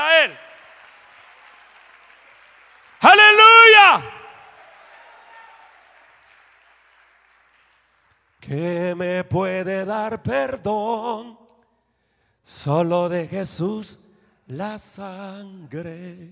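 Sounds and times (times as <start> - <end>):
audience applauding: 0.0 - 8.6
speech: 8.5 - 11.4, 12.5 - 16.2.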